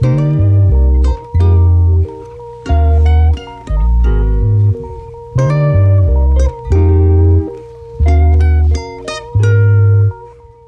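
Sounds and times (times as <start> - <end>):
guitar: 0.0 - 10.6.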